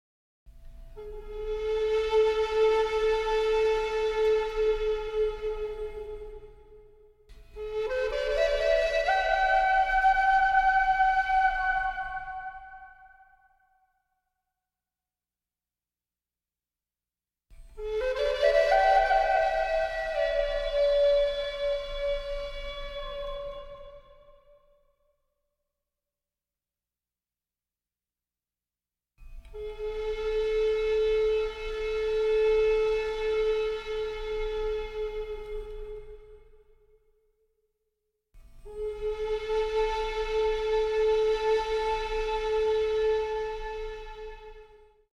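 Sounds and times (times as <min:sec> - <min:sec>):
two flutes playing: 0:01.0 - 0:06.9, 0:07.5 - 0:13.6, 0:17.8 - 0:24.5, 0:29.5 - 0:36.7, 0:38.7 - 0:45.1.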